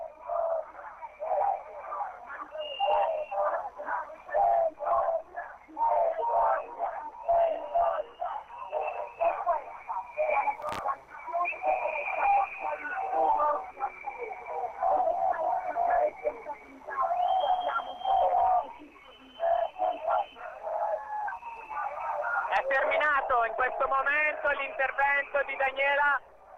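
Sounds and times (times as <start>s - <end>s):
crowd whistling in protest during speech: 0.0s - 26.5s.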